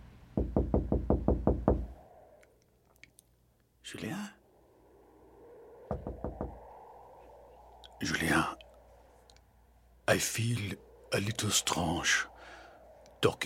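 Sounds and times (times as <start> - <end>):
knocking on a door: 0.4 - 1.8, 5.9 - 6.6
speech: 3.9 - 4.4, 8.0 - 8.6, 10.1 - 12.3, 13.2 - 13.4.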